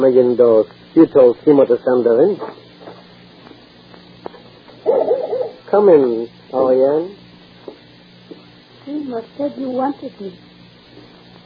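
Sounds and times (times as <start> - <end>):
speech: 0.0 - 2.6, 5.7 - 7.2, 8.9 - 10.5
dog barking: 4.8 - 5.6.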